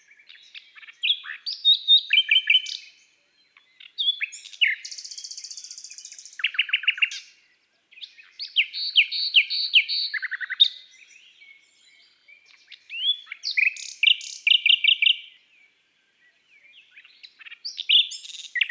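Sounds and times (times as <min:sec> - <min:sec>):
Common nightingale singing: 0:00.0 - 0:18.6.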